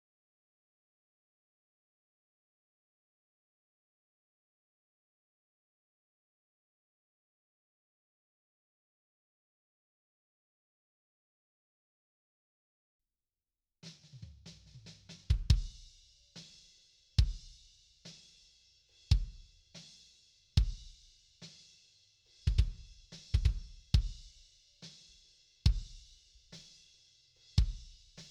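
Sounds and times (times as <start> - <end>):
kick drum: 15.3 - 15.8, 17.2 - 17.5, 19.1 - 19.5, 20.6 - 21.0, 22.4 - 24.3, 25.7 - 26.0, 27.6 - 28.0.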